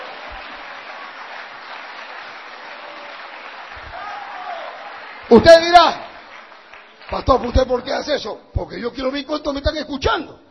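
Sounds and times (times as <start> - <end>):
church congregation clapping in praise during a sermon: 0.0 - 8.2
speech: 5.3 - 6.0, 7.1 - 10.4.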